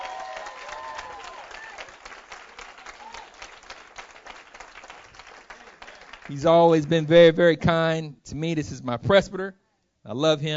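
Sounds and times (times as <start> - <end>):
church audience round of applause: 0.0 - 7.2
speech: 6.3 - 10.5.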